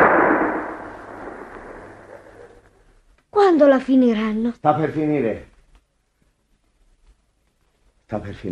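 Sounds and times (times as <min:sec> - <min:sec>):
hunting gunshot at ducks on marsh: 0:00.0 - 0:02.6
speech: 0:03.5 - 0:05.5, 0:08.1 - 0:08.4.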